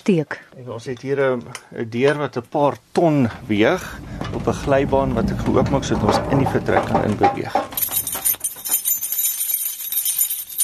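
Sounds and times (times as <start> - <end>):
speech: 0.0 - 7.8
keys jingling outside anechoic chamber: 7.6 - 10.6.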